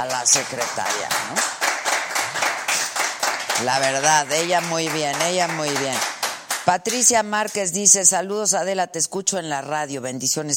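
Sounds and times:
speech: 0.0s - 1.6s, 3.6s - 10.5s
applause, hands clapping: 0.0s - 7.7s.

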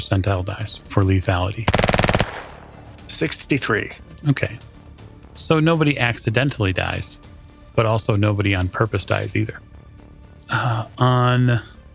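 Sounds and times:
speech: 0.0s - 2.0s, 3.1s - 4.7s, 5.4s - 7.2s, 7.8s - 9.7s, 10.5s - 11.7s
burst of automatic gunfire: 1.7s - 2.9s.

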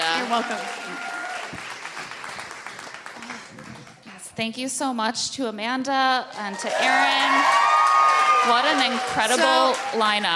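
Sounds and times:
audience applause for a guest at a live show: 0.0s - 4.2s, 6.4s - 10.3s
speech: 0.3s - 1.6s, 4.4s - 7.8s, 8.4s - 10.3s.

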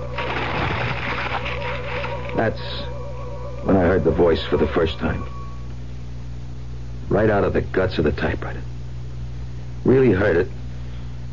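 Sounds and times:
paper sheets being crumpled: 0.0s - 2.7s
speech: 2.4s - 3.0s, 3.6s - 5.4s, 7.1s - 8.8s, 9.8s - 10.6s.

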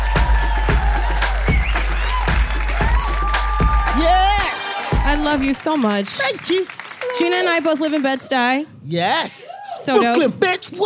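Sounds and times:
audience applause and cheering welcoming a comedian: 0.0s - 8.5s
speech: 5.3s - 10.8s.

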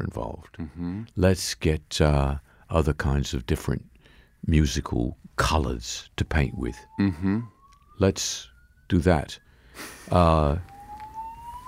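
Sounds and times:
speech: 0.0s - 10.7s
fire alarm going off: 6.4s - 11.6s.

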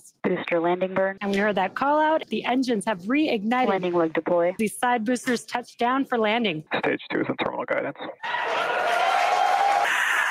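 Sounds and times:
speech: 0.3s - 8.7s
crowd cheering excitedly: 8.2s - 10.2s.

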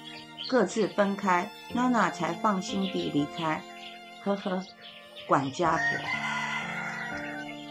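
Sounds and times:
speech: 0.5s - 6.2s
rooster crowing: 5.6s - 7.6s.

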